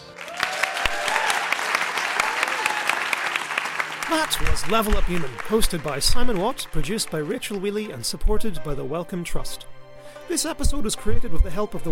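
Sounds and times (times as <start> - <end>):
audience applause: 0.0 - 8.0
speech: 4.1 - 9.7, 10.3 - 11.8.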